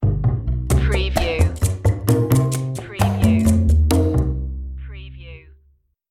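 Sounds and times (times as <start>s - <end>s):
jazzy opener underscore music: 0.0s - 4.8s.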